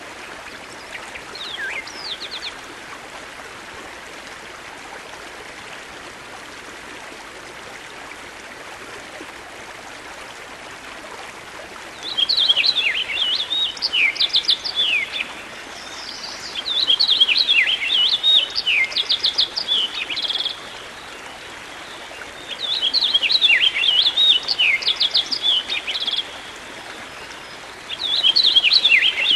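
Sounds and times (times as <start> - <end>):
songbird singing: 0.4 - 2.6, 11.9 - 29.3.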